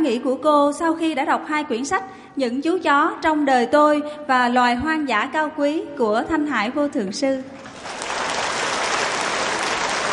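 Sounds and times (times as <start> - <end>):
speech: 0.0 - 8.0
crowd applause: 7.7 - 10.1.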